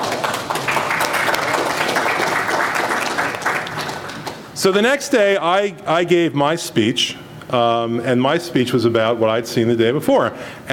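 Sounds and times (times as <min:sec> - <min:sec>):
audience applause: 0:00.0 - 0:04.5
speech: 0:04.6 - 0:10.7.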